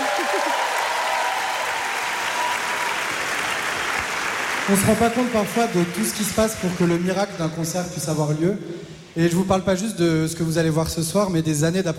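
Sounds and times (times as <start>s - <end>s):
audience applauding in a concert hall: 0.0s - 7.2s
speech: 4.7s - 11.9s.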